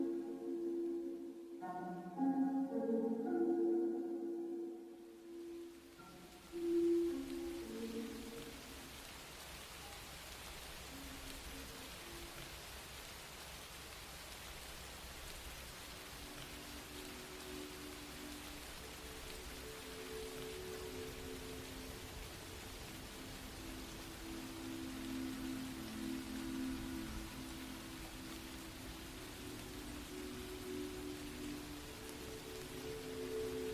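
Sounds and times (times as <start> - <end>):
clear melodic notes: 0.0 - 8.9, 16.3 - 33.7
soft rain: 0.0 - 33.7.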